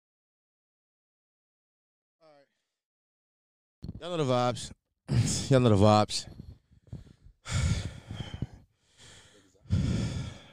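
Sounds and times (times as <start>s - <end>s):
speech: 4.0s - 6.4s
heavy out-of-breath panting: 6.8s - 10.5s.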